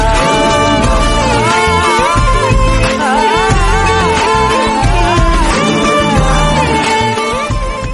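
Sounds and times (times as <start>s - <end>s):
song ringtone: 0.2s - 7.8s.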